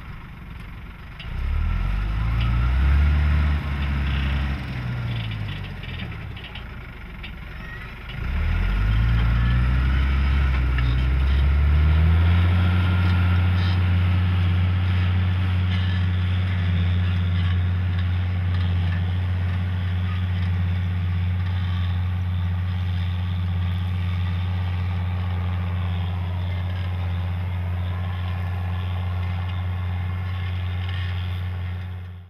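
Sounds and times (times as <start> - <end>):
tractor with six-cylinder 230 hp diesel engine: 0.0 - 32.2.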